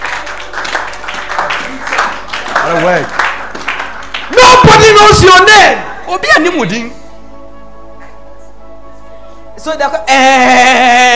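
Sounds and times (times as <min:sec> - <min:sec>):
audience clapping: 0:00.0 - 0:05.4
speech: 0:02.7 - 0:03.2, 0:04.4 - 0:07.0, 0:09.6 - 0:11.1.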